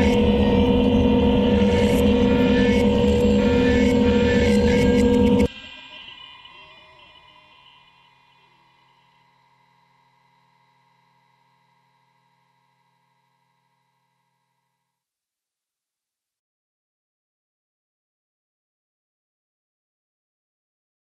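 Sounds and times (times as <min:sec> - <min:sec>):
bees buzzing: 0:00.0 - 0:05.5.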